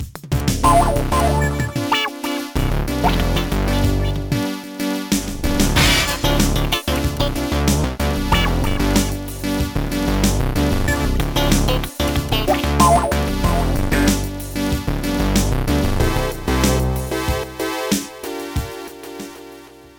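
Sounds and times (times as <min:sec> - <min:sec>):
synth jazz funk: 0:00.4 - 0:19.7.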